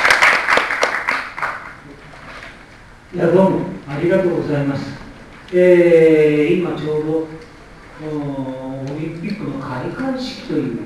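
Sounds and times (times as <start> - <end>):
audience applause: 0.0 - 1.8
speech: 3.1 - 10.8.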